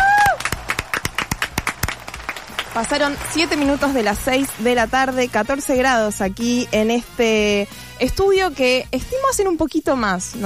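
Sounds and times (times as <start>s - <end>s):
small group clapping live in a radio studio: 0.0s - 4.8s
speech: 2.8s - 10.4s.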